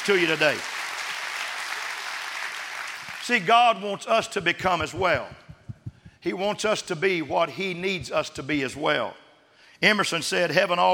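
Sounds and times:
speech: 0.0s - 0.8s, 3.2s - 5.4s, 6.2s - 9.2s, 9.8s - 10.9s
audience clapping hands all over the building: 0.0s - 3.4s.

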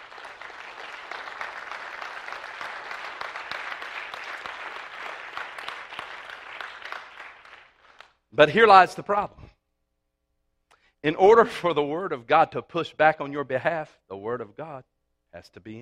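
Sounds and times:
audience clapping in praise: 0.0s - 8.5s
speech: 8.4s - 9.4s, 11.0s - 15.7s.

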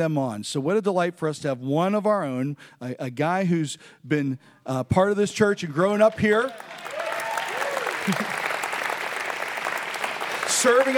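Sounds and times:
speech: 0.0s - 7.0s, 8.0s - 8.4s, 10.6s - 10.9s
audience applause: 6.0s - 10.9s.

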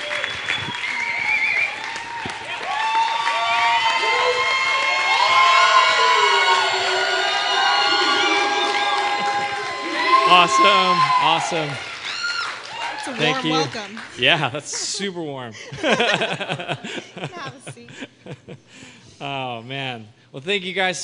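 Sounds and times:
church congregation cheering with whoops and shouts: 0.0s - 13.7s
church congregation applauding to welcome pastors: 0.0s - 15.0s
speech: 10.4s - 11.9s, 13.1s - 21.0s
laughter: 15.5s - 18.8s.

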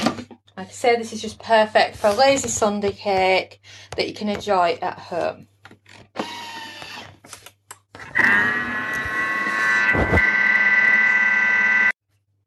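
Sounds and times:
speech: 0.6s - 5.5s
Thermomix mixer motor whirring: 6.2s - 7.1s, 8.1s - 11.9s.

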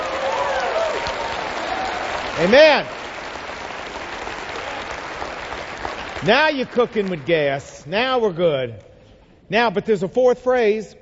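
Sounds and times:
audience applause: 0.0s - 7.4s
speech: 2.4s - 3.0s, 6.2s - 8.9s, 9.5s - 11.0s.

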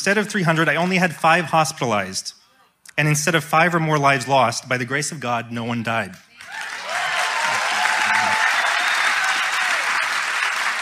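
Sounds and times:
speech: 0.0s - 2.4s, 3.0s - 6.7s
crowd applause: 6.4s - 10.8s.

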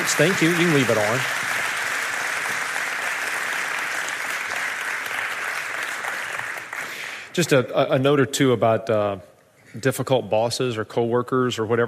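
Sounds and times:
audience applauding: 0.0s - 7.3s
speech: 0.1s - 1.4s, 7.4s - 11.8s.

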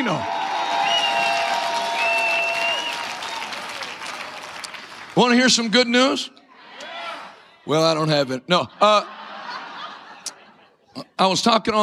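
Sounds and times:
speech: 0.0s - 0.4s, 5.2s - 6.4s, 7.7s - 9.2s, 11.0s - 11.8s
audience clapping: 0.1s - 5.6s
laughter: 8.6s - 10.9s.

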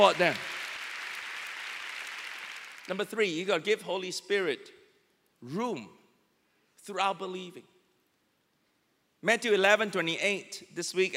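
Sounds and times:
speech: 0.0s - 0.5s, 2.9s - 4.8s, 5.4s - 6.0s, 6.8s - 7.7s, 9.2s - 11.1s
audience applause: 0.0s - 2.9s.

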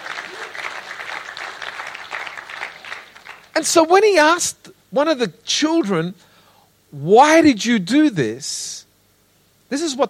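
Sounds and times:
audience clapping: 0.0s - 3.8s
speech: 3.6s - 6.3s, 6.9s - 8.8s, 9.7s - 10.0s.

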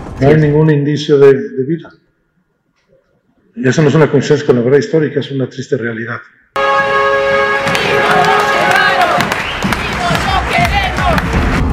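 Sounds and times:
speech: 0.2s - 2.0s, 3.6s - 6.9s
protest crowd shouting for justice: 6.8s - 11.6s.

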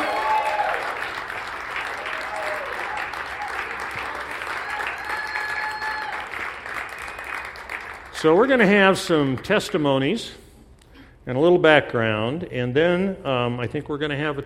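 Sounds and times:
audience applause welcoming a speaker to the front: 0.0s - 8.4s
speech: 8.2s - 10.4s, 11.2s - 14.4s.

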